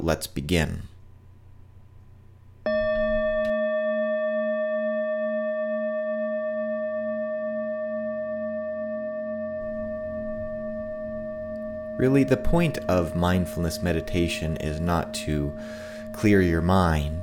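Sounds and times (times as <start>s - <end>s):
speech: 0.0s - 0.9s, 12.0s - 17.2s
meditation bell: 2.7s - 17.2s.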